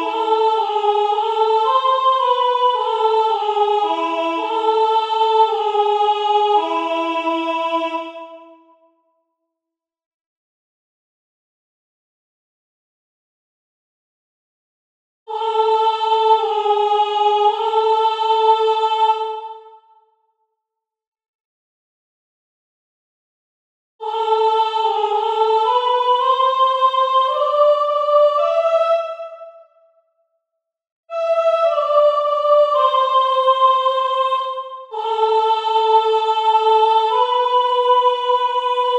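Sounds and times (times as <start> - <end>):
soprano singing: 0.0 - 8.5, 15.3 - 19.7, 24.0 - 29.4, 31.1 - 38.9.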